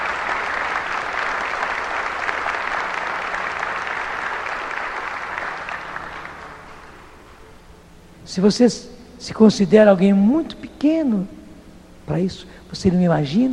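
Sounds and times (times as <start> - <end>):
audience applause at a religious gathering after a sermon: 0.0 - 7.2
speech: 8.4 - 11.4, 12.1 - 13.5.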